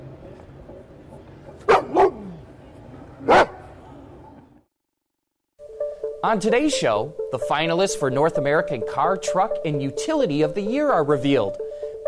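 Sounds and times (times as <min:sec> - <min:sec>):
dogs barking: 0:01.6 - 0:02.4, 0:03.2 - 0:03.7
speech: 0:06.2 - 0:11.6.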